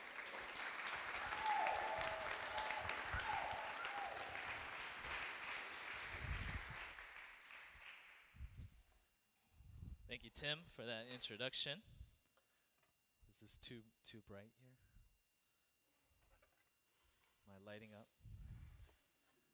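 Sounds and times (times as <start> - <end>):
audience applause: 0.0 - 8.3
speech: 10.1 - 11.9, 13.4 - 14.9, 17.5 - 18.1.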